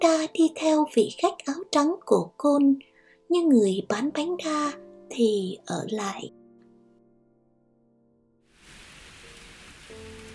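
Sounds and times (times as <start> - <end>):
speech: 0.0 - 6.4
sudden heavy rain shower: 8.5 - 10.3.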